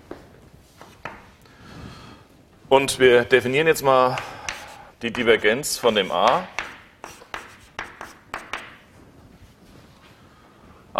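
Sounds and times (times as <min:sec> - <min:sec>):
speech: 0:02.7 - 0:04.3, 0:05.0 - 0:06.6
handwriting on a surface: 0:04.1 - 0:05.0, 0:05.8 - 0:08.8.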